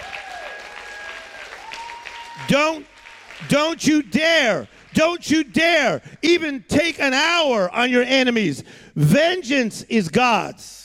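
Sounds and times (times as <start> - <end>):
people shouting and whooping: 0.0 - 2.8
audience clapping: 0.0 - 5.2
speech: 2.4 - 10.8.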